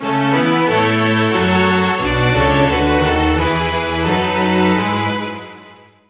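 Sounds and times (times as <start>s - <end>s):
fanfare: 0.0s - 5.6s.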